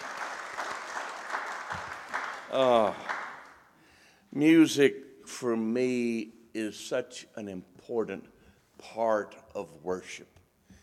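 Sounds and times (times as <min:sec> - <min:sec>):
audience applause: 0:00.0 - 0:03.6
speech: 0:02.5 - 0:03.1, 0:04.4 - 0:10.4.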